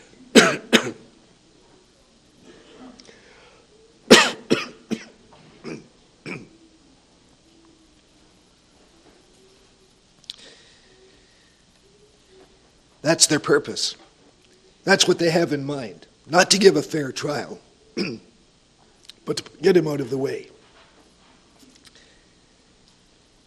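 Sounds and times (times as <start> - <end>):
man coughing: 0.4 - 1.0, 4.1 - 6.5, 18.0 - 18.2
throat clearing: 4.1 - 6.6, 18.0 - 18.3
speech: 13.1 - 14.0, 14.8 - 18.3, 19.3 - 20.5.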